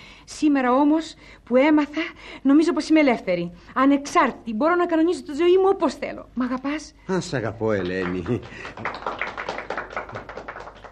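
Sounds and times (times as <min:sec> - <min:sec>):
speech: 0:00.4 - 0:09.2
scattered applause in a radio drama: 0:07.7 - 0:10.9.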